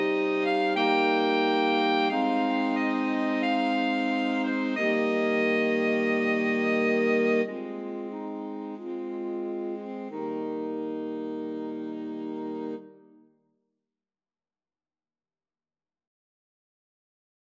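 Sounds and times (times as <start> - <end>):
saxophone quartet playing: 0.0 - 13.2.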